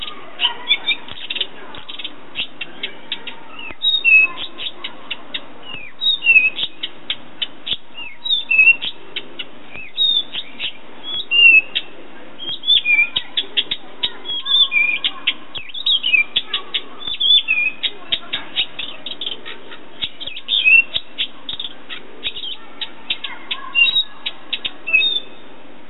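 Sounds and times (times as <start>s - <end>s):
thrush singing: 0.0s - 25.6s.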